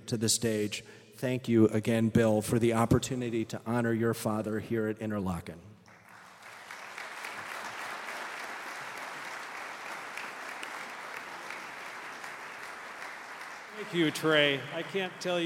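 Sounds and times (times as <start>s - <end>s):
speech: 0.1s - 5.7s, 13.9s - 15.4s
audience at a memorial service in Kresge Auditorium at Interlochen applauding: 5.9s - 15.4s.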